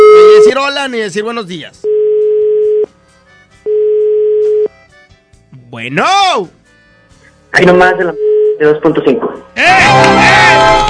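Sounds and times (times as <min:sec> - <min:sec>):
ringback tone of a telephone call being dialed: 0:00.0 - 0:00.5, 0:01.9 - 0:02.9, 0:03.7 - 0:04.7, 0:08.2 - 0:08.6
speech: 0:00.5 - 0:01.9, 0:05.7 - 0:06.6, 0:07.5 - 0:10.8.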